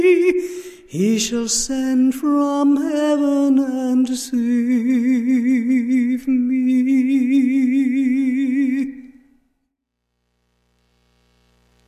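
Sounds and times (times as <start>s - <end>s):
a cappella scripture song: 0.0s - 9.3s.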